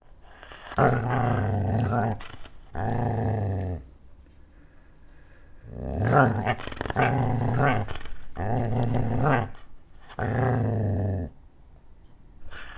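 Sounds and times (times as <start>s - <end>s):
dog growling: 0.3s - 4.0s, 5.6s - 11.4s, 12.5s - 12.7s.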